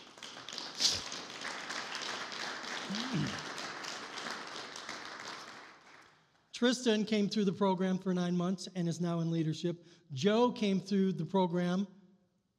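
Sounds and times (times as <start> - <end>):
audience applause: 0.0 - 6.2
speech: 6.6 - 12.0.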